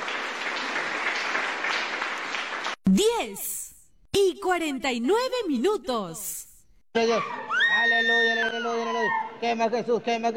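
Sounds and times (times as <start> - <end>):
audience applauding in church: 0.0 - 2.8
speech: 2.9 - 3.6, 4.2 - 10.3.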